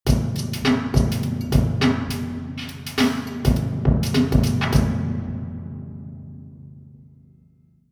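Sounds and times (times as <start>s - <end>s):
drum beating: 0.0s - 5.9s.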